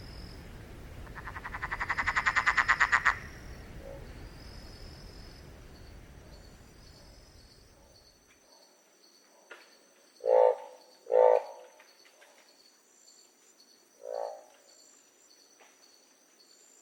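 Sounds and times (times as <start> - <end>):
frog croaking: 1.0 - 4.1, 10.2 - 11.8, 14.0 - 14.5.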